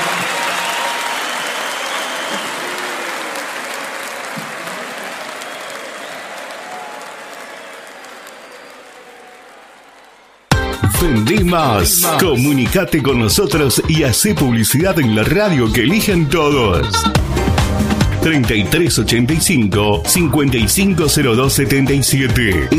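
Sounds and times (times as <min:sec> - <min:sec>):
audience applause: 0:00.0 - 0:13.2
speech: 0:11.0 - 0:22.7.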